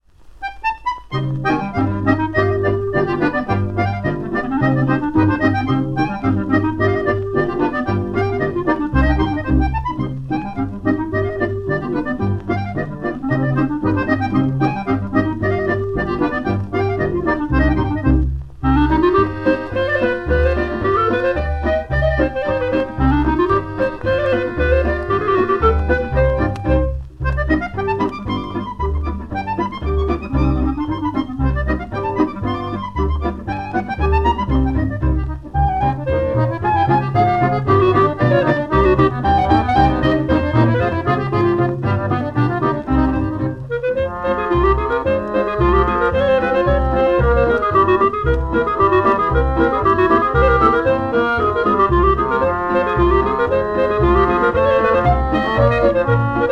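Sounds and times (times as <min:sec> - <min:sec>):
polka music: 0:00.0 - 0:56.5.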